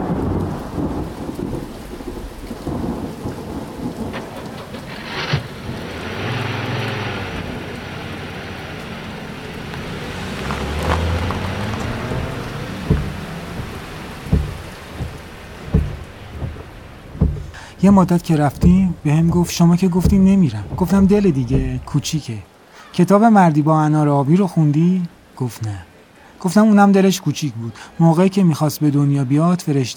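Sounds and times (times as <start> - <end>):
low rolling thunder with sharper claps: 0.0 - 22.1
rain falling: 0.0 - 29.9
speech: 17.8 - 29.9.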